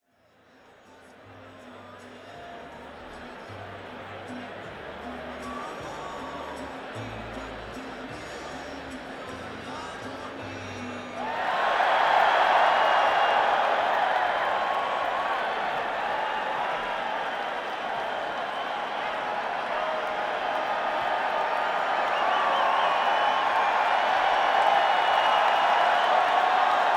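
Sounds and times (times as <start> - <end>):
crowd at Madison Square Garden: 0.0 - 26.9.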